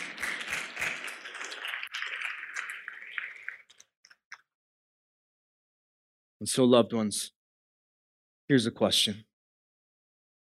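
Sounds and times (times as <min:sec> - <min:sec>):
crowd clapping: 0:00.0 - 0:03.8
speech: 0:06.4 - 0:07.4, 0:08.5 - 0:09.3.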